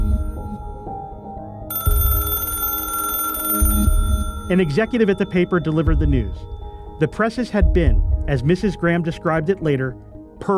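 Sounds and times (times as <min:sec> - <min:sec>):
telephone ringing: 0:01.7 - 0:06.8
speech: 0:04.5 - 0:10.5.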